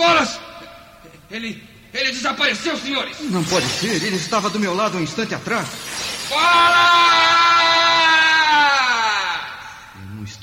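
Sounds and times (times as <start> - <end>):
speech: 0.2 - 7.2, 10.2 - 10.4
person screaming in the dark: 6.1 - 10.0.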